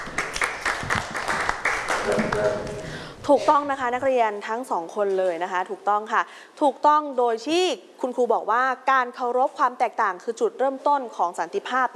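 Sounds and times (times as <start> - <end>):
classroom applause: 0.0 - 3.0
speech: 2.4 - 11.9.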